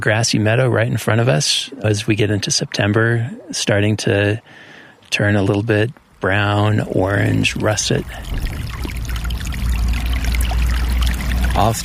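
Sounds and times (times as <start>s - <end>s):
speech: 0.0s - 9.0s, 11.6s - 11.8s
small brook of running snowmelt water: 4.4s - 11.8s.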